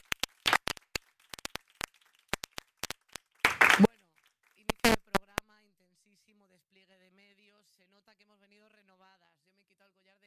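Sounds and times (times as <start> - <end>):
applause: 0.0 - 5.4.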